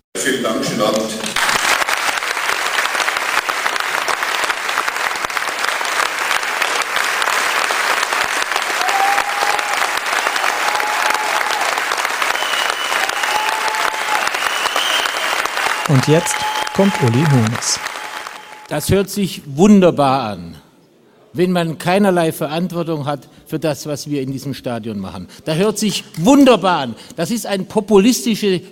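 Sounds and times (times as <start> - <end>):
speech: 0.2 - 1.6, 16.0 - 17.9, 18.7 - 20.6, 21.3 - 28.6
audience applause after a speech: 1.2 - 18.7
faint whistles or cheers: 8.7 - 18.7.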